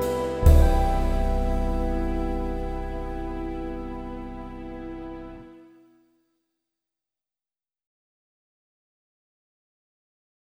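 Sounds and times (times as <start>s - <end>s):
waltz practice music: 0.0s - 5.7s.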